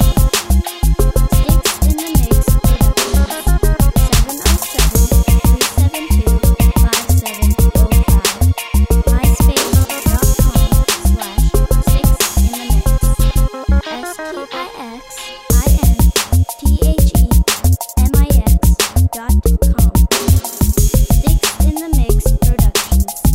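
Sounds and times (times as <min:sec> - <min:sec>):
reggae bass line: 0:00.0 - 0:14.5, 0:15.5 - 0:23.3.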